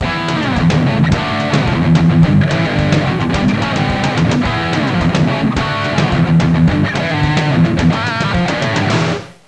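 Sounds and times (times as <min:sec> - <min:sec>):
rock music ringtone: 0:00.0 - 0:09.3.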